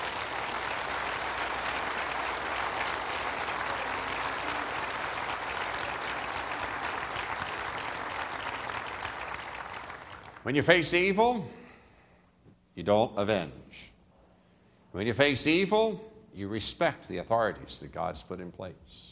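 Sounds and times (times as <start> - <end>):
audience clapping: 0.0 - 10.5
speech: 10.5 - 11.6, 12.8 - 13.9, 15.0 - 19.1.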